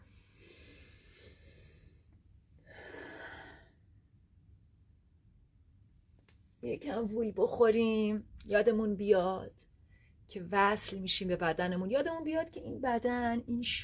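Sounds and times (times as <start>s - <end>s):
deep breaths during guided relaxation: 0.0s - 3.9s
speech: 6.6s - 9.7s, 10.3s - 13.8s.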